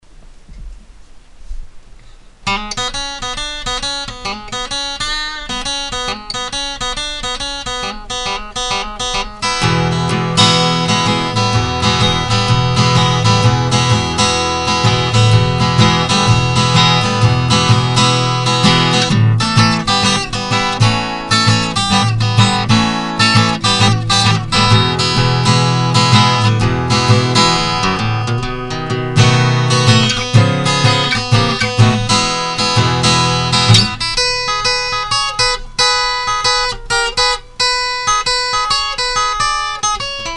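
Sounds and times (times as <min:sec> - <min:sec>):
blues music: 0:02.4 - 0:40.3.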